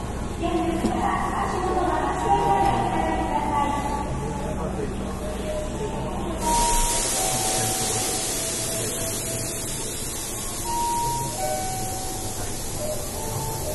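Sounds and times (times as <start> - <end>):
Nankai 8300 series airport express train rumble: 0.0 - 13.7
bright hiss: 6.4 - 11.8.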